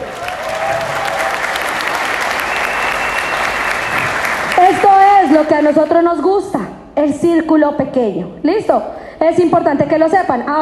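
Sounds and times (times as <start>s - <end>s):
audience applause: 0.0s - 5.8s
speech: 5.4s - 10.5s.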